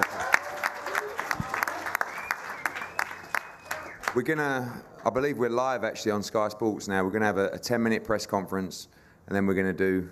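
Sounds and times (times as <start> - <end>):
audience applause: 0.0 - 4.3
speech: 4.2 - 10.1.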